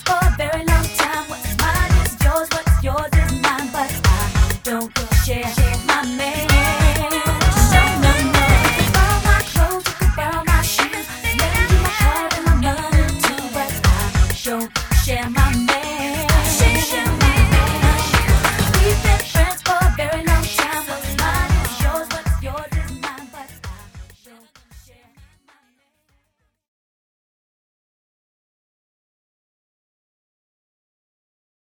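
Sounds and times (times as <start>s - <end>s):
urban pop music: 0.0s - 25.3s.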